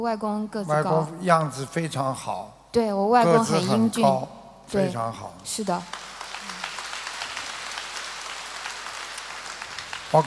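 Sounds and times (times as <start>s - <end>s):
speech: 0.0s - 6.1s
applause from many hands clapping: 5.4s - 10.2s.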